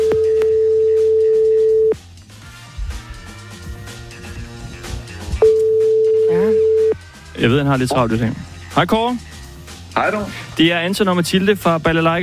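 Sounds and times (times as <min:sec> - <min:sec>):
telephone ringing tone while calling: 0:00.0 - 0:02.0, 0:05.4 - 0:07.0
music: 0:00.0 - 0:12.2
speech: 0:07.4 - 0:09.3, 0:10.0 - 0:12.2.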